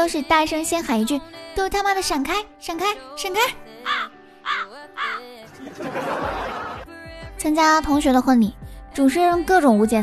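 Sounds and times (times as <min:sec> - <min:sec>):
speech: 0:00.0 - 0:06.4, 0:07.4 - 0:10.0
crow cawing: 0:03.8 - 0:05.3
laughter: 0:05.4 - 0:06.9.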